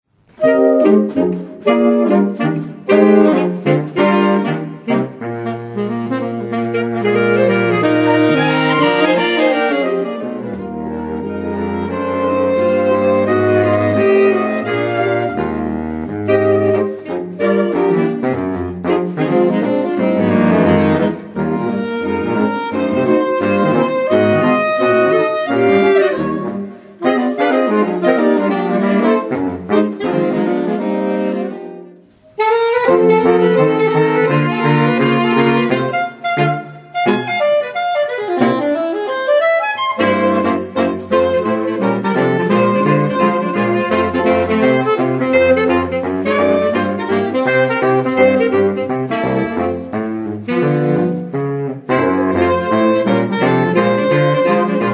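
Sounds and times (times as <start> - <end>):
saxophone quartet: 0.1 - 54.9.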